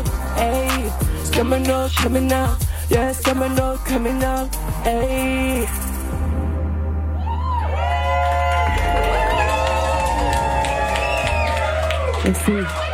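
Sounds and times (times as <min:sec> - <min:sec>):
speech: 0:00.4 - 0:06.2, 0:12.2 - 0:12.8
small crowd cheering after live song: 0:07.0 - 0:12.9
clapping: 0:07.9 - 0:12.9.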